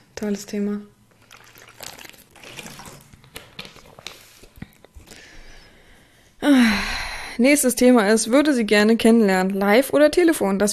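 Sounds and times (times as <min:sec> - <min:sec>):
speech: 0:00.2 - 0:01.0, 0:07.4 - 0:10.7
pouring-like liquid trickle: 0:01.1 - 0:04.6
person drinking water: 0:01.1 - 0:05.7.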